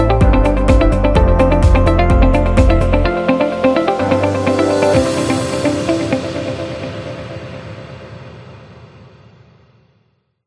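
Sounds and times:
upbeat corporate music: 0.0s - 6.9s.

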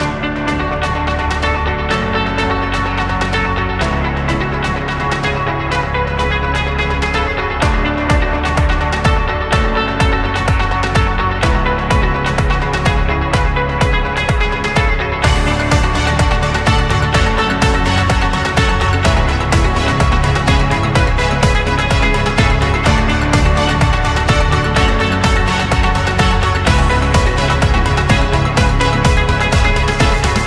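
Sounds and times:
epic corporate music: 0.0s - 30.4s.

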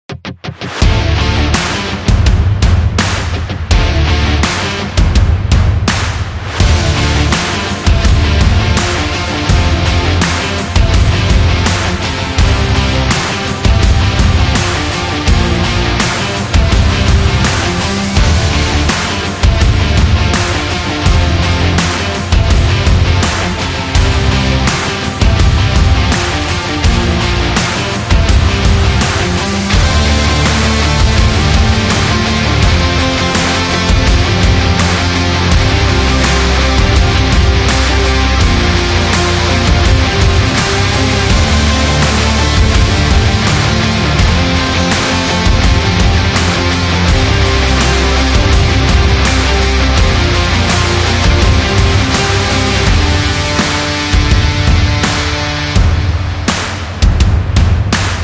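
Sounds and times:
energetic indie rock music: 0.2s - 58.2s.

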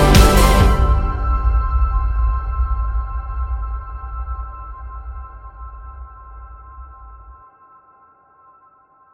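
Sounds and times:
epic corporate music: 0.0s - 3.2s.

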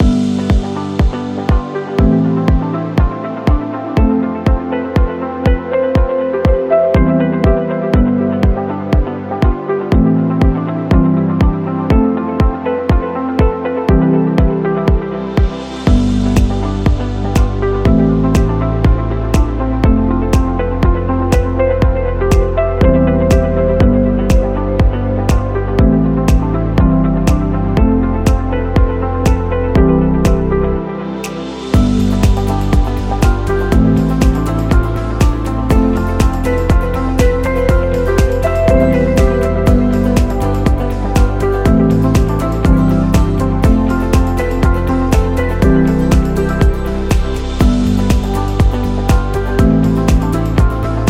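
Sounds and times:
medical music loop: 0.0s - 51.0s.

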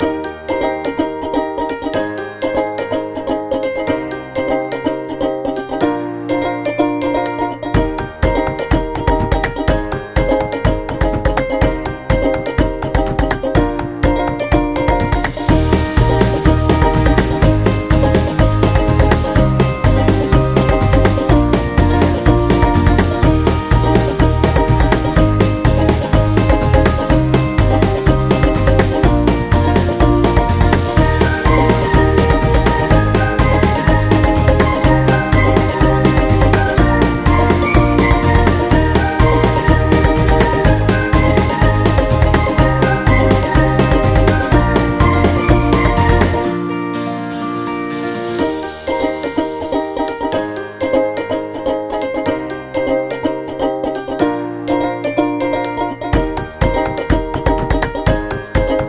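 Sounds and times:
happy birthday kids background music: 0.0s - 58.8s.

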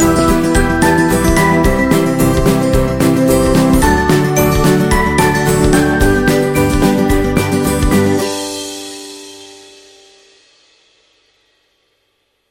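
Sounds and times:
happy funny music: 0.0s - 9.3s.

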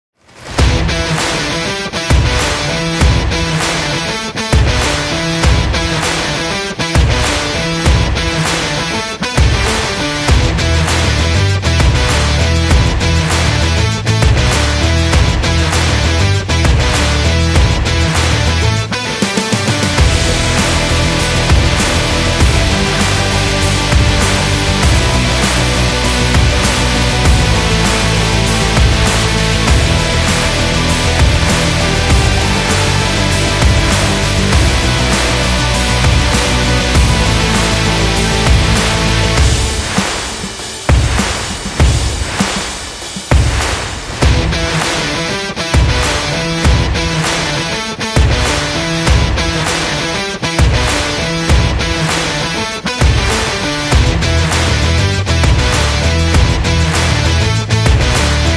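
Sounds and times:
energetic action rock music: 0.4s - 58.5s.

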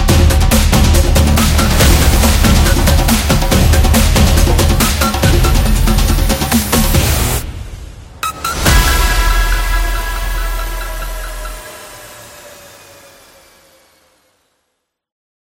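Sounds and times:
football percussion background music with samba rhythm: 0.0s - 7.4s, 8.2s - 12.3s.

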